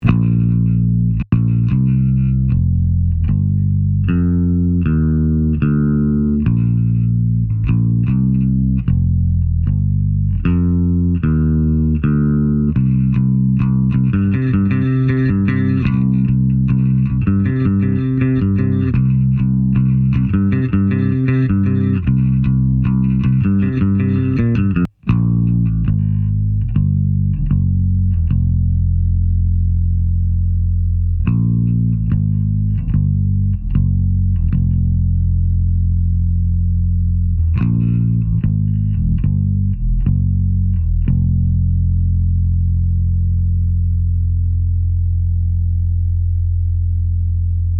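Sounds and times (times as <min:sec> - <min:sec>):
bass: 0:00.0 - 0:47.7.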